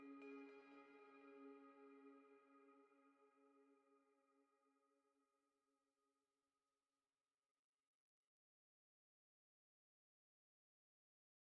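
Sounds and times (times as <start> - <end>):
spiritual tonal bell ambience in C sharp: 0.0 - 2.5.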